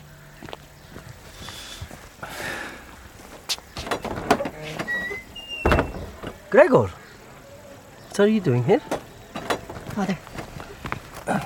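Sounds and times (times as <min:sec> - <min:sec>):
gate being opened with scraping, grinding and squeaking: 0:03.8 - 0:06.5
speech: 0:06.5 - 0:07.0, 0:08.2 - 0:09.0, 0:10.0 - 0:10.3.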